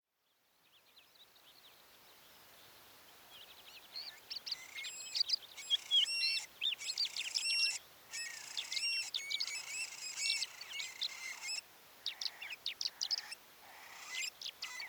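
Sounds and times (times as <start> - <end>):
Eurasian stone-curlew calling: 4.1 - 14.8.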